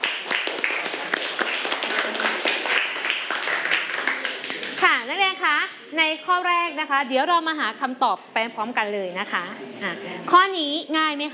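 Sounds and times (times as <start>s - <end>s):
classroom clapping: 0.0s - 5.0s
speech: 6.0s - 11.3s.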